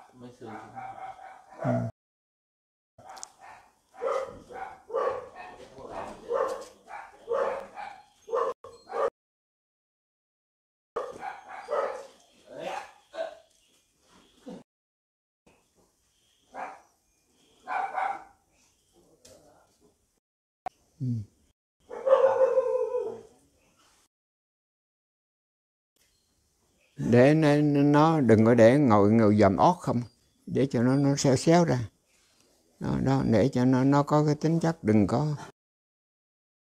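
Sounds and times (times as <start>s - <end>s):
dogs barking: 0.0s - 1.9s, 3.0s - 9.1s, 11.0s - 13.5s, 16.5s - 16.9s, 17.6s - 18.4s, 21.8s - 23.3s
speech: 0.2s - 1.9s, 27.1s - 31.9s, 32.8s - 35.5s.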